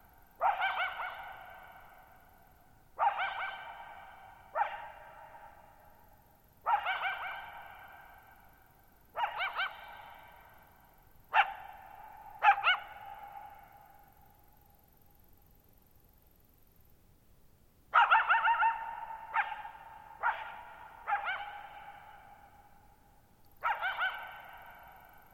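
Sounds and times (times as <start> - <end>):
coyote barking and yipping: 0.4 - 2.1, 3.0 - 5.6, 6.6 - 8.2, 9.1 - 10.5, 11.3 - 13.8, 17.9 - 22.6, 23.6 - 25.2.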